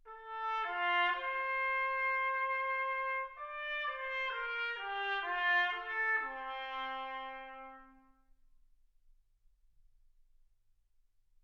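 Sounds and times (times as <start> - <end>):
trumpet: 0.0 - 8.4.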